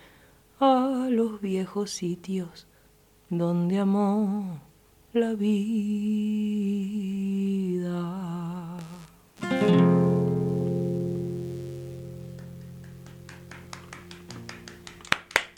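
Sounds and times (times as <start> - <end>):
speech: 0.6 - 2.7, 3.3 - 8.4
lingering musical chord: 9.4 - 15.1
person clapping: 12.2 - 15.5.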